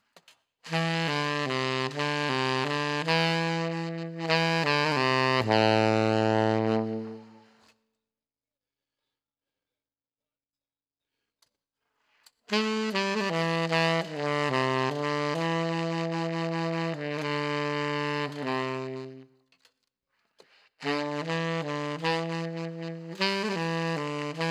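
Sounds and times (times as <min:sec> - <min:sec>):
saxophone: 0:00.7 - 0:07.7, 0:12.5 - 0:19.4, 0:20.8 - 0:24.4.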